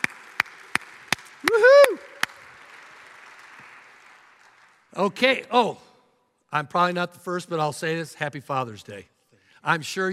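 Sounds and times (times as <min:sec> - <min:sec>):
audience applause: 0:00.0 - 0:04.9
speech: 0:05.0 - 0:05.9, 0:06.5 - 0:10.1.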